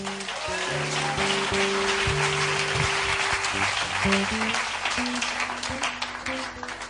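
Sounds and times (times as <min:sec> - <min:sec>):
audience applause: 0:00.0 - 0:06.8.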